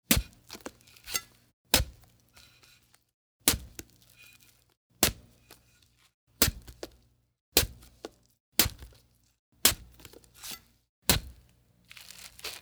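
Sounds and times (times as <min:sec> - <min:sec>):
knife stabbing watermelon: 0:00.1 - 0:01.2, 0:01.8 - 0:02.0, 0:03.5 - 0:03.9, 0:05.0 - 0:05.3, 0:06.4 - 0:07.0, 0:07.6 - 0:07.9, 0:08.6 - 0:09.0, 0:09.7 - 0:12.5.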